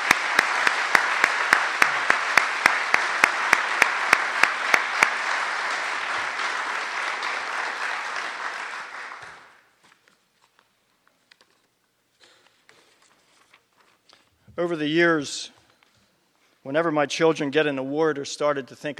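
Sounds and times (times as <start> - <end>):
audience applause: 0.0 - 9.7
speech: 14.6 - 15.6, 16.6 - 18.9.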